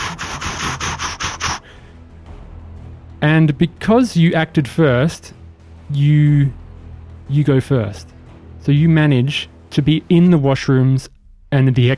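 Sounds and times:
metal scraping: 0.0 - 1.6
speech: 3.2 - 6.6, 7.3 - 11.9.

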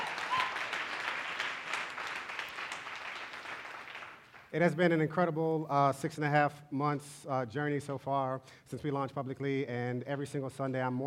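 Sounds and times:
congregation applauding at an Easter church service: 0.0 - 4.6
speech: 4.5 - 11.0.

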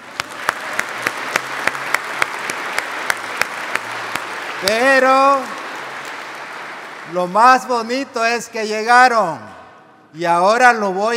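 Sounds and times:
applause: 0.0 - 8.9
speech: 4.6 - 5.6, 7.1 - 11.1.

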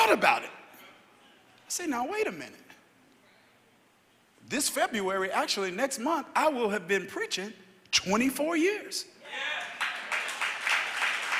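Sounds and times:
speech: 0.1 - 0.6, 1.7 - 2.6, 4.4 - 9.6
audience clapping: 9.5 - 11.3.

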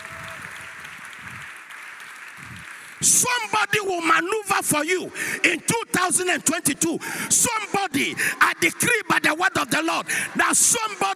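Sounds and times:
audience clapping: 0.0 - 4.1
speech: 3.0 - 11.1.

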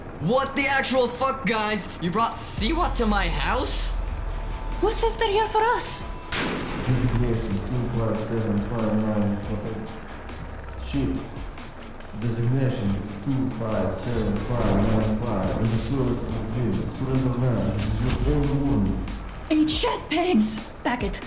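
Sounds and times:
speech: 0.2 - 4.0, 4.8 - 6.5, 8.0 - 10.0, 10.9 - 11.4, 12.2 - 21.2
gunfire: 6.3 - 7.4.

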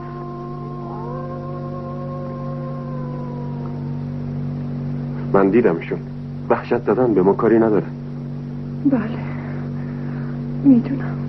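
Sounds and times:
wolves howling: 0.0 - 4.5
low continuous hum: 0.0 - 11.2
speech: 5.3 - 8.0, 8.8 - 9.3, 10.6 - 11.2.

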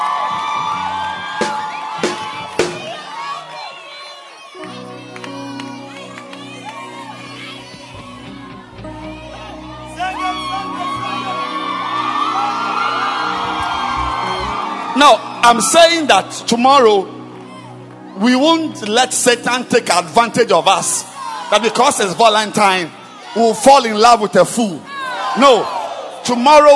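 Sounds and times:
audience clapping and cheering: 0.0 - 16.5, 17.1 - 18.2
speech: 15.1 - 17.2, 18.2 - 26.7.

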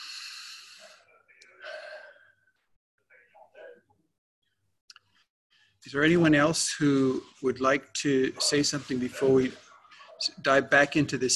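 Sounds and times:
group at a book-study gathering taking a deep breath: 0.0 - 1.0, 1.6 - 2.4
speech: 5.8 - 9.6, 10.2 - 11.3.

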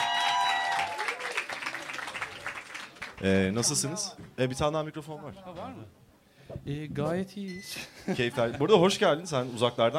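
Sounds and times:
people cheering: 0.0 - 2.8
group clapping in welcome: 0.0 - 3.4
speech: 3.2 - 9.9.

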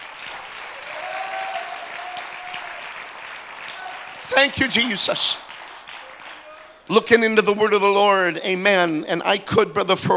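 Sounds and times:
audience clapping: 0.0 - 7.5
speech: 4.3 - 5.4, 6.9 - 10.1.

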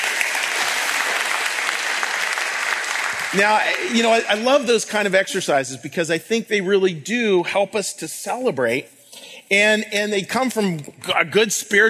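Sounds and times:
audience applause: 0.0 - 5.1
speech: 3.3 - 11.8.

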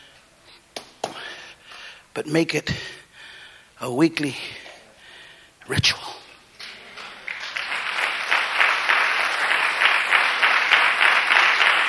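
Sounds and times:
speech: 2.2 - 3.0, 3.8 - 4.6, 5.7 - 6.0
audience clapping: 6.6 - 11.8.

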